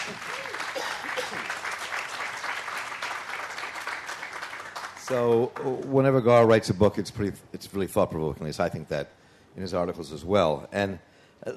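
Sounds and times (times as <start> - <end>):
audience applause: 0.0 - 6.0
speech: 5.1 - 11.5.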